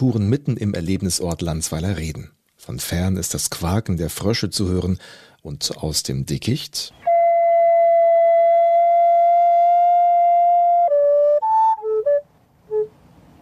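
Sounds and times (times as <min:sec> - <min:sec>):
speech: 0:00.0 - 0:07.0
recorder flute playing ethereal tones: 0:07.0 - 0:12.9.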